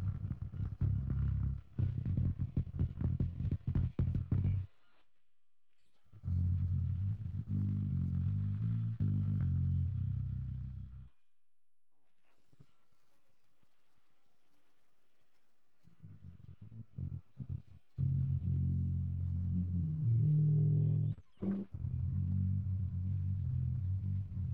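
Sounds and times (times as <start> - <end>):
bass: 0.0 - 4.8, 6.1 - 11.2, 16.0 - 24.5.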